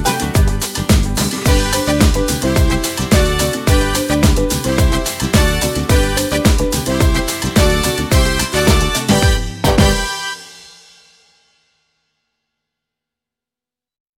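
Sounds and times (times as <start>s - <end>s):
pop salsa music: 0.0s - 11.0s.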